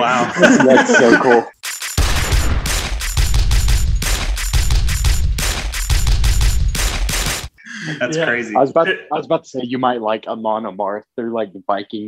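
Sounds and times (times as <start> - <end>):
laughter: 0.0 - 1.5
speech: 0.0 - 1.6, 7.9 - 12.0
machine gun firing used as drum beat: 1.6 - 7.5.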